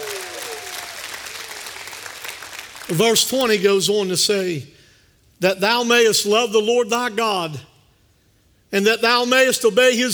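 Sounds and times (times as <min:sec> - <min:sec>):
large audience clapping: 0:00.0 - 0:03.4
speech: 0:02.9 - 0:04.8, 0:05.4 - 0:07.7, 0:08.7 - 0:10.1.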